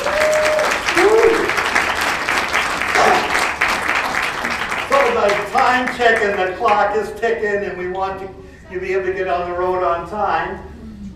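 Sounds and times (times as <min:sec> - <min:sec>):
whoops and cheers: 0:00.0 - 0:01.8
audience applause for presenters: 0:00.0 - 0:06.8
speech: 0:06.0 - 0:10.7.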